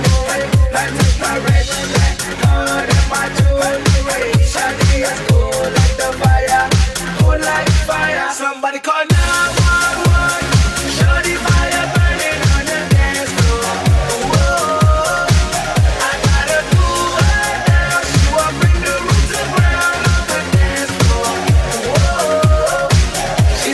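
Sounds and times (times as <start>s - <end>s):
pop music: 0.0s - 23.7s.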